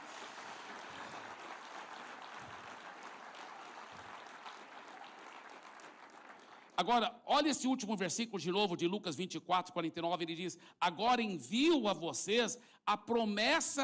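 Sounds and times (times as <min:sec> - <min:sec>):
audience applauding: 0:00.0 - 0:06.9
speech: 0:06.8 - 0:13.8.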